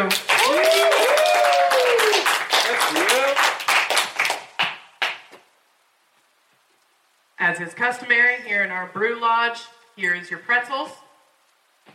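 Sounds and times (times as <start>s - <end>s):
audience applause: 0.0s - 5.3s
speech: 7.5s - 11.0s.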